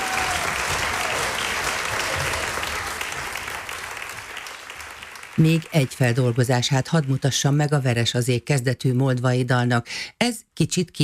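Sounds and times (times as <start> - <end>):
audience applause: 0.0 - 7.6
speech: 5.4 - 11.0.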